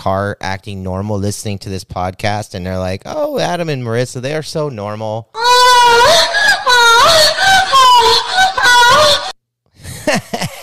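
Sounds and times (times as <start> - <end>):
speech: 0.0 - 6.3
woman moaning sexually: 5.4 - 9.4
laughter: 5.4 - 10.6.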